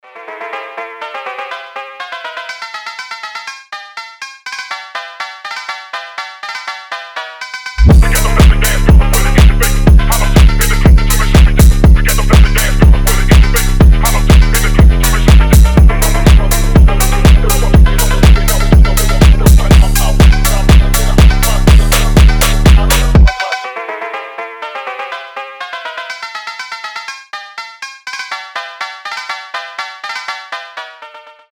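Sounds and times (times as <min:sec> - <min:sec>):
classical phonk house music: 0:07.4 - 0:23.8.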